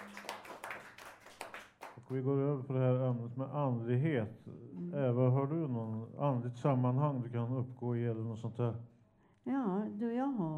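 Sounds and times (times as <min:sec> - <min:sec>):
applause, hands clapping: 0:00.0 - 0:02.2
speech: 0:02.0 - 0:10.5.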